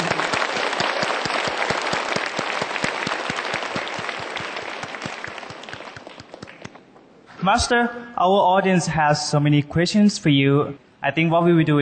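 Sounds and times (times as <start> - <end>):
audience applause: 0.0 - 6.8
speech: 7.4 - 11.8.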